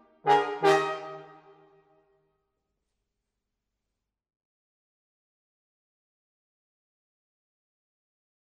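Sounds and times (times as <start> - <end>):
ragtime brass: 0.0 - 1.6.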